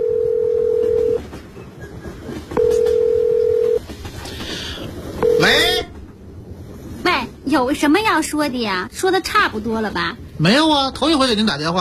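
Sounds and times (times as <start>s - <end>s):
mobile phone dialing beeps: 0.0s - 1.2s, 2.6s - 3.8s, 5.2s - 5.5s
low hum: 0.0s - 11.7s
faint clatter: 0.2s - 10.3s
speech: 7.5s - 11.7s.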